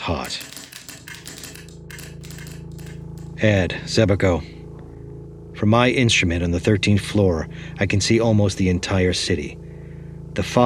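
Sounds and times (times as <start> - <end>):
speech: 0.0 - 0.6, 3.4 - 4.6, 5.6 - 9.6, 10.4 - 10.6
typewriters rattling off typed lines: 0.0 - 3.4
steady low hum: 0.0 - 10.6.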